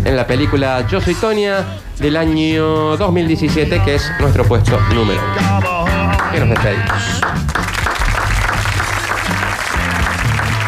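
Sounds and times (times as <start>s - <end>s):
speech: 0.1s - 7.4s
applause: 6.2s - 10.6s.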